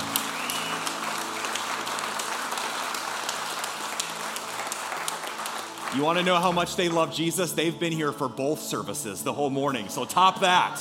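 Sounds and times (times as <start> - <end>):
church congregation in Des Moines applauding to welcome visiting guests from Denmark: 0.0 - 7.2
speech: 5.9 - 10.8.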